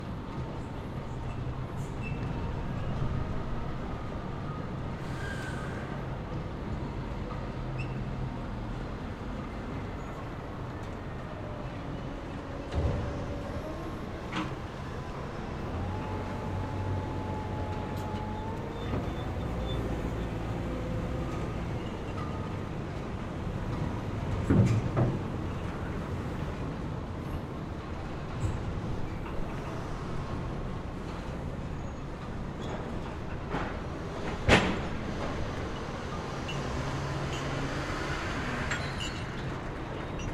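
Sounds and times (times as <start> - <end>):
cargo ship at a dock: 0.0 - 40.3
trucks at a dock: 0.0 - 40.3
cranes operating at a dock: 10.7 - 22.2
cargo loading at a dock: 11.6 - 21.5.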